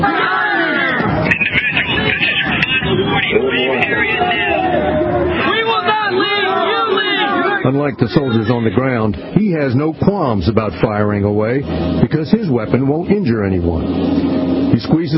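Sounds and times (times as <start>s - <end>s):
angry protesting crowd shouting: 0.0s - 9.0s
speech: 7.7s - 15.1s.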